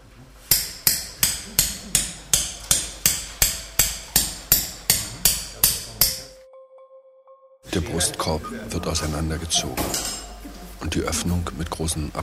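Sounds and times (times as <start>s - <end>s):
hammer and bone chisel splitting a breastbone: 0.5s - 6.4s
speech: 7.8s - 10.2s, 10.8s - 12.2s.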